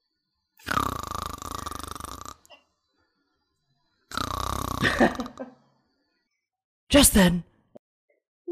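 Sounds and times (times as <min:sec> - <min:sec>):
man snoring in his sleep: 0:00.6 - 0:02.5, 0:04.1 - 0:05.4
speech: 0:04.8 - 0:05.6, 0:06.9 - 0:07.5.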